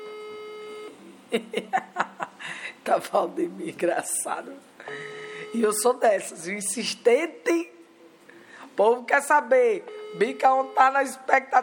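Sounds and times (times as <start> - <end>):
telephone call electronic ringback tone: 0.0 - 0.9, 4.9 - 5.8, 9.9 - 11.1
laughter: 1.3 - 2.5
speech: 1.3 - 7.7, 8.8 - 11.6
short bursts of voice sounds on the telephone line: 5.5 - 7.7, 9.1 - 11.6.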